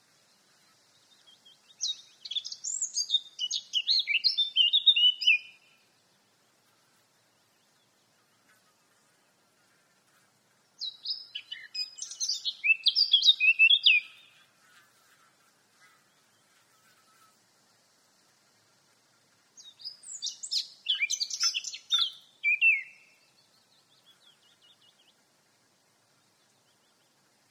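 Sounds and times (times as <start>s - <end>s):
Eurasian blackcap warbling song: 1.2s - 5.8s, 10.8s - 14.3s, 19.6s - 25.2s.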